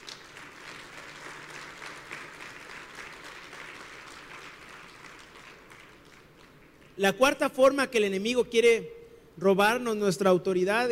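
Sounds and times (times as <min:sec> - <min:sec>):
loud applause from audience: 0:00.0 - 0:07.0
speech: 0:07.0 - 0:10.9.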